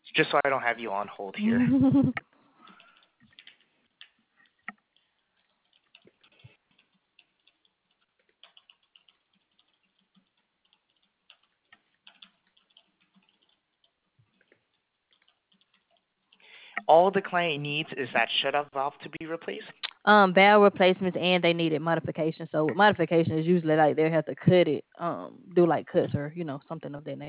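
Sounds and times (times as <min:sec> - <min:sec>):
speech: 0:00.2 - 0:02.3, 0:16.9 - 0:27.2
notes being typed on a computer keyboard: 0:02.6 - 0:16.8.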